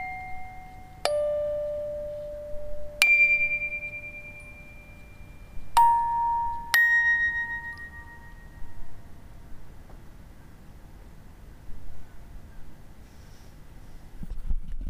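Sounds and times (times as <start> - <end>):
music box: 0.0 - 9.3.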